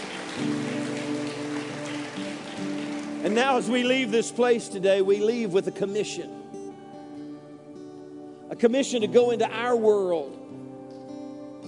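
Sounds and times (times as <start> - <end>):
audience applause: 0.0 - 4.4
speech: 3.2 - 6.4, 8.6 - 10.4.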